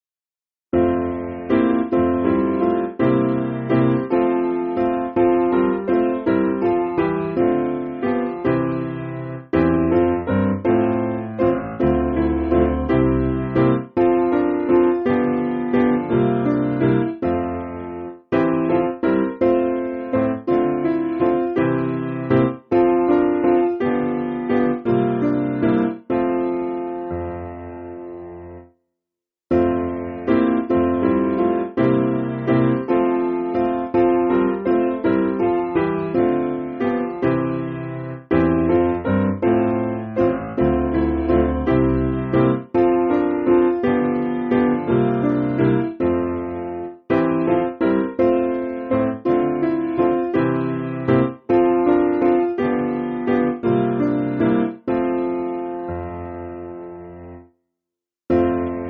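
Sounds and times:
piano backing music for churches: 0:00.8 - 0:28.7, 0:29.5 - 0:57.5, 0:58.3 - 0:58.8.

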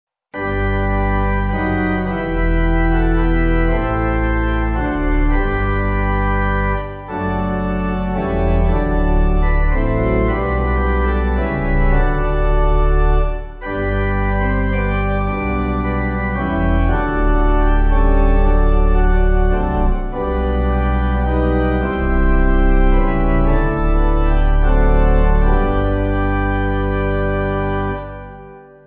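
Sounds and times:
pipe organ church music backing: 0:00.4 - 0:28.8.

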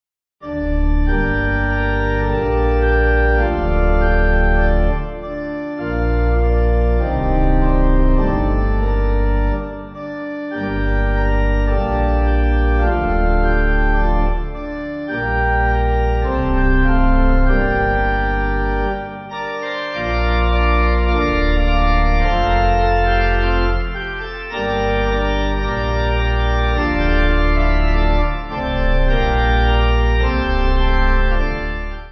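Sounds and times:
pipe organ: 0:00.4 - 0:32.0.

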